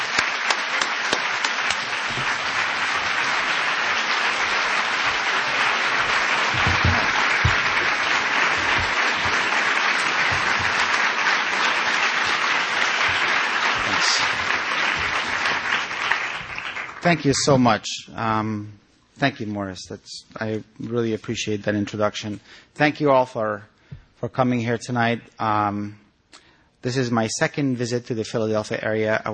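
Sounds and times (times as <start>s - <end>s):
audience applause at a Philadelphia event: 0.0s - 17.6s
speech: 17.1s - 29.3s.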